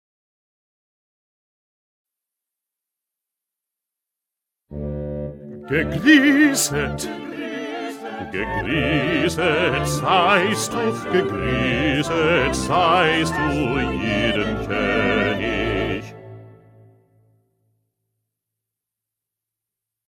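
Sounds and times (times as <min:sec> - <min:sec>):
bass: 0:04.7 - 0:07.1, 0:08.3 - 0:16.3.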